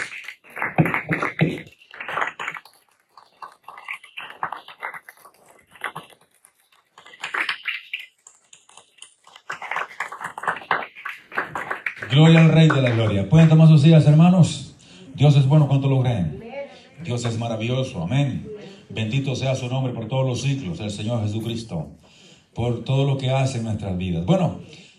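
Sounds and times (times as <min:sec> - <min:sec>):
audience applause: 0:00.0 - 0:05.1, 0:09.4 - 0:13.7
speech: 0:12.2 - 0:14.6, 0:15.2 - 0:16.4, 0:17.0 - 0:22.0, 0:22.6 - 0:24.8.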